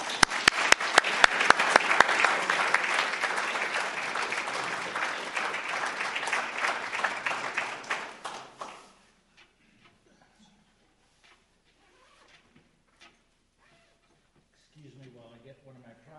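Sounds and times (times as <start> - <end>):
audience applause welcoming a speaker at a Montana gathering: 0.0 - 9.0.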